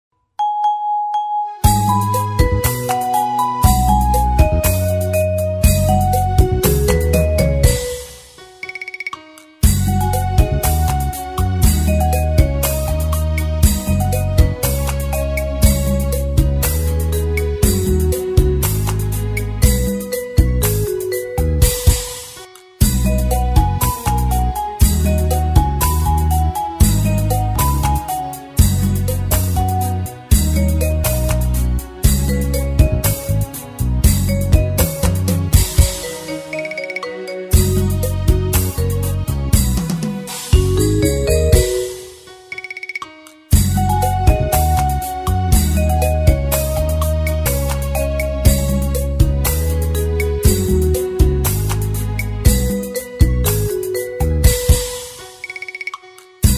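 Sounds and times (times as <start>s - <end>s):
music beat: 1.4s - 56.5s.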